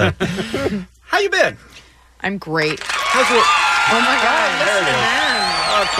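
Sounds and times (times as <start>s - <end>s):
speech: 1.2s - 1.6s, 2.2s - 5.9s
small group of people clapping: 2.6s - 5.9s.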